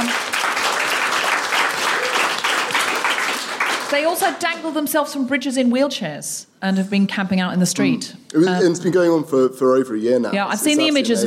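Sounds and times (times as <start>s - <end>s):
crowd applauding: 0.0s - 4.6s
speech: 3.9s - 11.2s.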